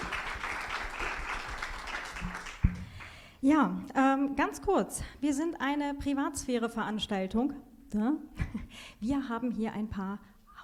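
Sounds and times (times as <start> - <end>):
audience applause: 0.0 - 3.1
speech: 3.4 - 10.6.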